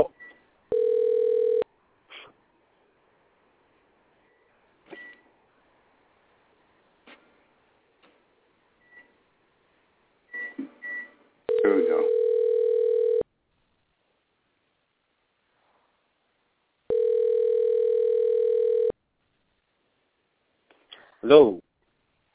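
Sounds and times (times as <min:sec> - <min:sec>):
telephone being dialed: 0:00.7 - 0:01.6, 0:11.5 - 0:13.2, 0:16.9 - 0:18.9
speech: 0:21.3 - 0:21.6.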